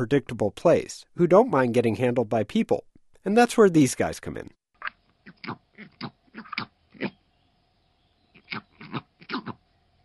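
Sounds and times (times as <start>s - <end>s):
speech: 0.0s - 4.6s, 5.5s - 6.1s
northern bald ibis mating call: 4.8s - 7.3s, 8.2s - 9.7s.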